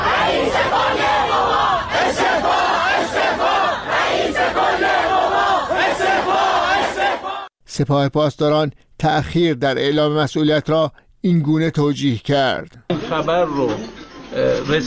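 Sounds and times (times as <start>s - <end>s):
protest crowd chanting in unison: 0.0s - 7.5s
speech: 7.8s - 14.8s.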